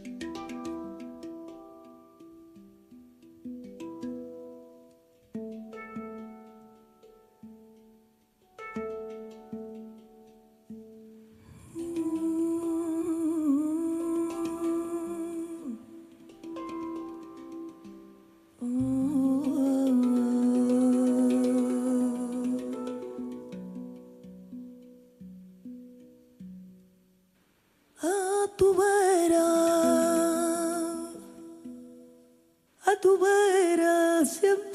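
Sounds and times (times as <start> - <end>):
cover version of a song with wavering lead voice: 11.4 - 16.3, 18.5 - 23.4, 28.0 - 31.8, 32.8 - 34.7.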